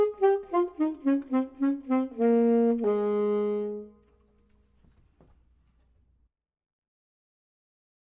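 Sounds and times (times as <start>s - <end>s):
clarinet: 0.0s - 4.5s
saxophone: 0.0s - 4.6s.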